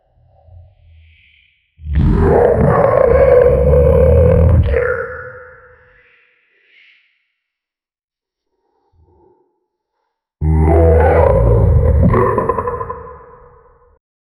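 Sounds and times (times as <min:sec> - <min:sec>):
T. rex dinosaur roar: 0:01.8 - 0:05.5, 0:10.4 - 0:14.0.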